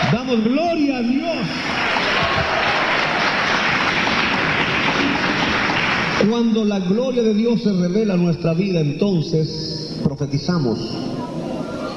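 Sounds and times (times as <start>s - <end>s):
speech: 0.1s - 2.7s, 6.2s - 11.2s
audience applause: 1.4s - 6.6s.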